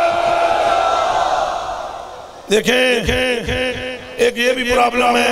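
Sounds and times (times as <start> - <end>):
crowd chanting a religious slogan: 0.1 - 2.4
speech: 2.5 - 5.2.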